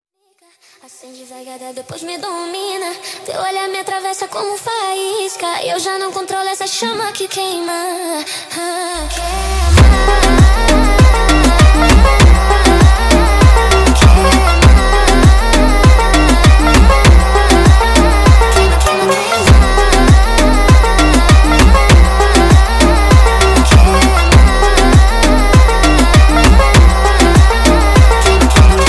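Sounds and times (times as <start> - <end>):
sped up montagem music: 9.0 - 28.8.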